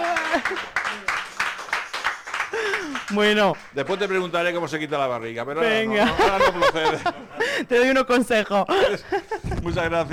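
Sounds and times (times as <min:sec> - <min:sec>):
laughter: 0:00.0 - 0:00.8, 0:05.6 - 0:07.8, 0:08.7 - 0:10.1
applause: 0:00.0 - 0:05.2
speech: 0:00.4 - 0:01.0, 0:03.1 - 0:10.1.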